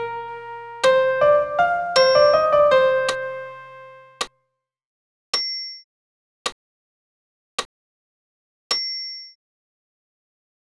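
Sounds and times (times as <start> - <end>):
soprano singing a sacred piece: 0.0 - 4.1
solo piano: 0.0 - 4.2.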